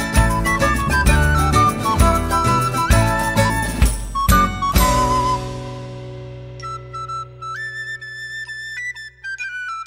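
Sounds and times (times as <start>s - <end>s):
tarantella dance music: 0.0s - 5.6s.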